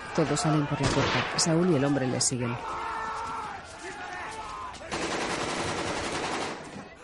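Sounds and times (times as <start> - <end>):
speech: 0.1 - 2.9
gunfire during a shootout: 4.9 - 6.8.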